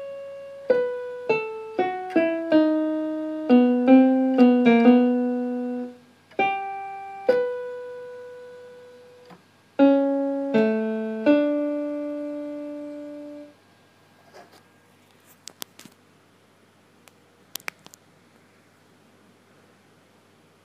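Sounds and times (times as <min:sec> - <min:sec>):
piano: 0:00.0 - 0:13.5.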